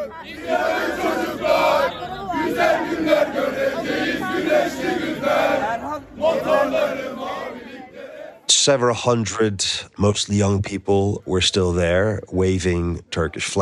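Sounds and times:
speech: 0.0s - 1.1s, 8.6s - 13.6s
crowd chanting hymns and the national anthem at political rally: 0.0s - 8.5s.

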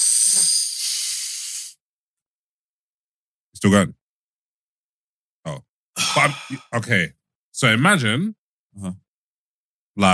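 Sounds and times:
deep inhale: 0.0s - 1.8s, 6.0s - 6.8s
speech: 3.6s - 4.0s, 5.4s - 9.0s, 10.0s - 10.1s.

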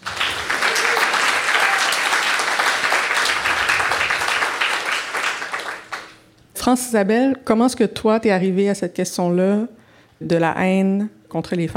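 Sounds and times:
audience applause: 0.0s - 6.2s
speech: 6.6s - 11.7s.

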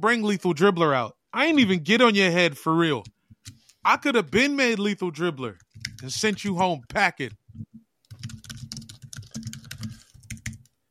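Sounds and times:
speech: 0.0s - 7.7s
computer keyboard typing while drafting contracts: 5.6s - 6.6s, 7.3s - 10.8s.

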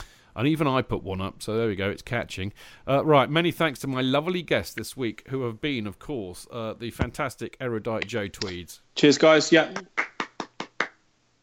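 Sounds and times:
speech: 0.4s - 10.1s
crisp hand claps: 8.0s - 8.6s, 9.8s - 11.0s.

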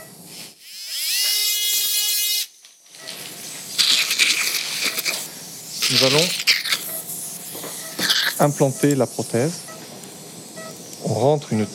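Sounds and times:
powered surgical saw cutting through bone: 0.3s - 2.5s, 3.2s - 8.5s
speech: 5.9s - 6.6s, 8.4s - 9.7s, 11.2s - 11.7s.

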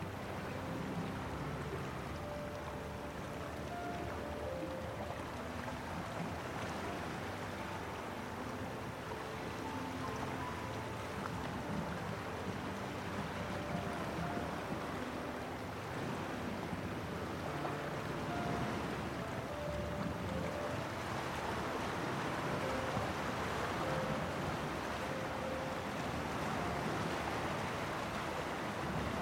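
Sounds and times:
calming piano melody: 0.0s - 29.2s
coastal cliff waves washing against the shore: 0.0s - 29.2s.

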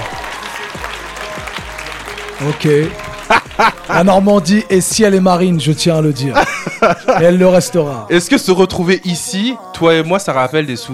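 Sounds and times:
audience applause: 0.0s - 5.2s
speech: 2.4s - 10.9s
laughter: 2.8s - 4.4s, 6.2s - 7.8s.

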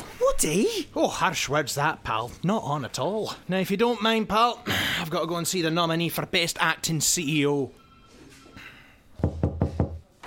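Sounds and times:
speech: 0.4s - 7.8s
knocking on a door: 9.2s - 10.0s.

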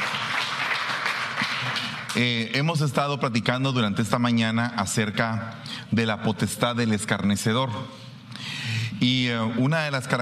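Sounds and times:
audience applauding loudly: 0.0s - 2.4s
speech: 2.2s - 10.2s.

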